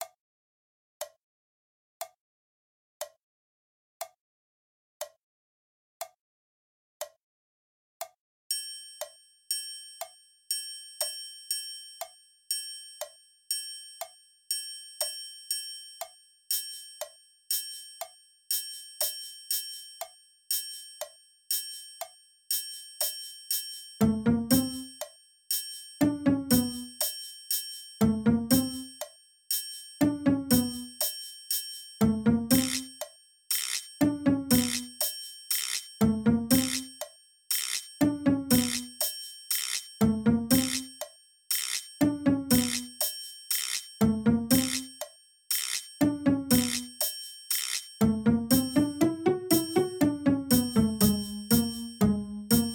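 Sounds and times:
comedy background music at 60 bpm: 0:24.0 - 0:25.1, 0:26.0 - 0:27.1, 0:28.0 - 0:29.0, 0:30.0 - 0:31.0, 0:32.0 - 0:52.7.

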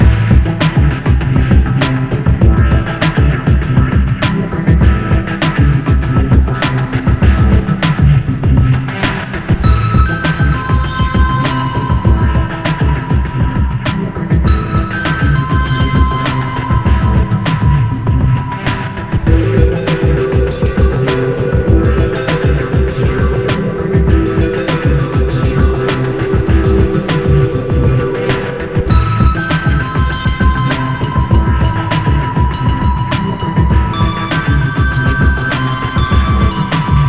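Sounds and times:
underground beat: 0:00.0 - 0:37.0.

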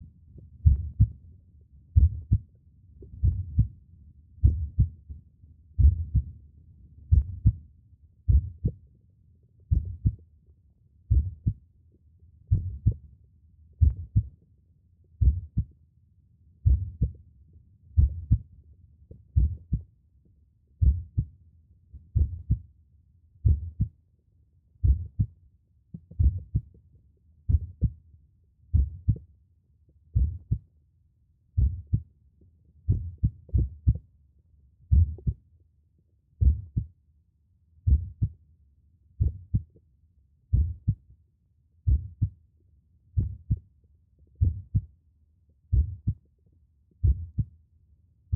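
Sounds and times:
heartbeat: 0:00.4 - 0:01.2, 0:02.0 - 0:02.4, 0:03.0 - 0:03.7, 0:04.4 - 0:05.0, 0:05.8 - 0:06.4, 0:07.1 - 0:07.6, 0:08.3 - 0:08.8, 0:09.7 - 0:10.2, 0:11.1 - 0:11.6, 0:12.5 - 0:13.0, 0:13.8 - 0:14.3, 0:15.2 - 0:15.7, 0:16.6 - 0:17.2, 0:18.0 - 0:18.5, 0:19.3 - 0:19.9, 0:20.8 - 0:21.3, 0:22.1 - 0:22.6, 0:23.4 - 0:23.9, 0:24.8 - 0:25.4, 0:26.0 - 0:26.8, 0:27.5 - 0:28.0, 0:28.7 - 0:29.3, 0:30.1 - 0:30.6, 0:31.6 - 0:32.1, 0:32.9 - 0:34.1, 0:34.9 - 0:35.4, 0:36.4 - 0:36.9, 0:37.9 - 0:38.4, 0:39.2 - 0:39.8, 0:40.5 - 0:41.0, 0:41.9 - 0:42.3, 0:43.2 - 0:43.6, 0:44.4 - 0:44.9, 0:45.7 - 0:46.3, 0:47.0 - 0:47.5.

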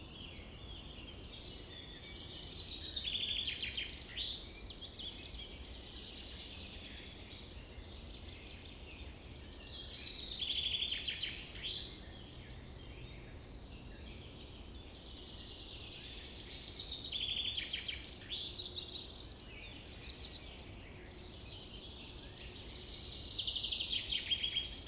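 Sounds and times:
summer forest ambience: 0:00.0 - 0:24.8.

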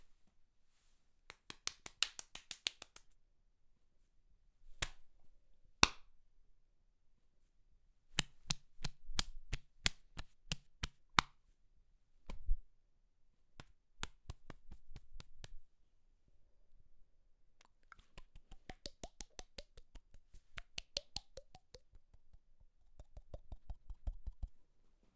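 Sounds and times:
slapping various body parts: 0:01.3 - 0:03.1, 0:08.2 - 0:11.3, 0:13.6 - 0:15.6, 0:17.6 - 0:24.6.

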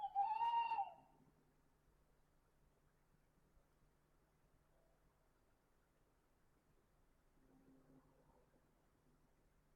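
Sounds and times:
owl hooting: 0:00.0 - 0:01.0.

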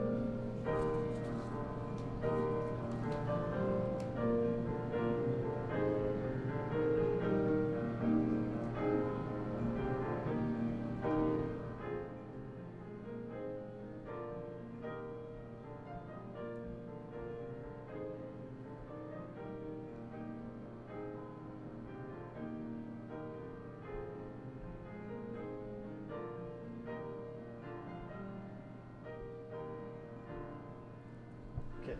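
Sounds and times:
piano heard from outside the room: 0:00.0 - 0:31.9.

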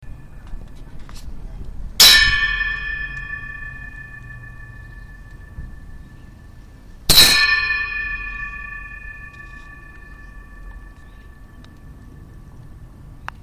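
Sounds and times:
bell: 0:02.0 - 0:12.5.

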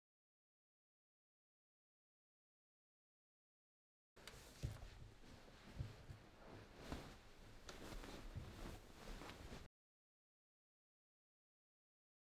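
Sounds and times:
person getting into bed: 0:04.2 - 0:09.7.

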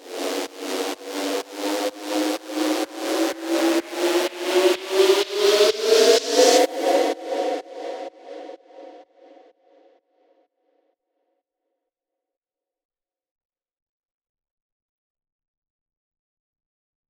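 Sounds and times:
aggressive riser at 126 bpm: 0:00.4 - 0:09.4.

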